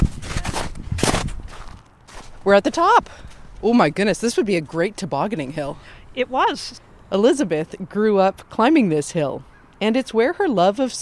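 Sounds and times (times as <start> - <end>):
footsteps crunching on snow: 0.0 - 3.7
speech: 2.4 - 11.0.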